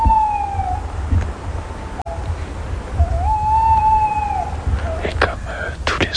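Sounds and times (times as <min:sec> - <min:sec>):
tawny owl calling: 0:00.0 - 0:01.0, 0:02.9 - 0:06.0.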